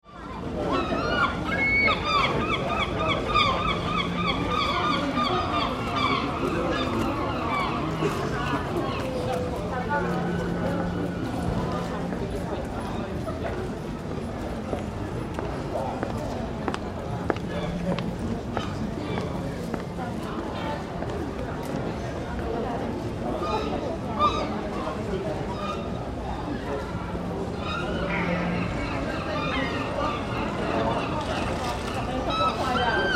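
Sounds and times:
seaside town street ambience: 0.0s - 33.1s
seagulls calling in a seaside town: 0.6s - 9.3s, 27.1s - 33.1s.

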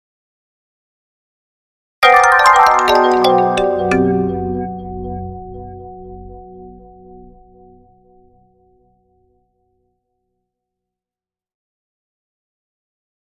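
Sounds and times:
marimba mallet with multiple delays: 2.0s - 4.8s.

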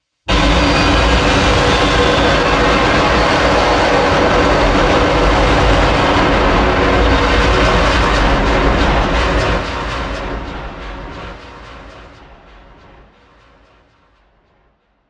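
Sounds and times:
sci-fi explosive destruction attack: 0.3s - 11.1s.

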